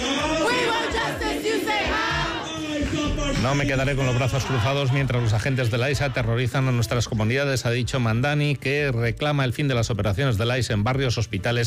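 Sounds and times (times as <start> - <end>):
crowd of neighbors shouting in protest: 0.0 - 6.4
speech: 3.4 - 11.6.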